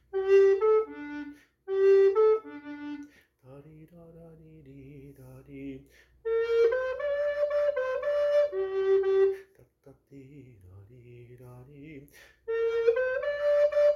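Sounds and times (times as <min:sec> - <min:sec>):
recorder playing bass parts: 0:00.0 - 0:03.1, 0:06.3 - 0:09.4, 0:12.5 - 0:13.9.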